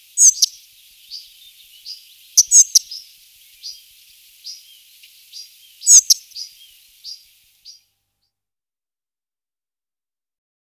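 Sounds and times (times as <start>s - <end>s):
spotted flycatcher singing: 0.0s - 7.8s.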